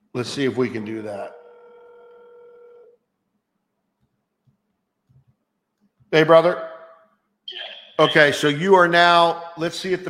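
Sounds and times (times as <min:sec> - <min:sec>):
speech: 0:00.2 - 0:01.4, 0:06.1 - 0:06.7, 0:08.0 - 0:10.0
steady buzzy electronic tone of a phone on speaker: 0:01.2 - 0:03.0.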